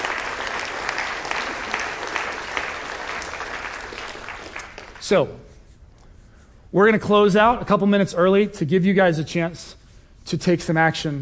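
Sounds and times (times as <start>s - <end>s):
room full of people applauding: 0.0s - 5.0s
speech: 5.1s - 5.5s, 6.7s - 11.2s.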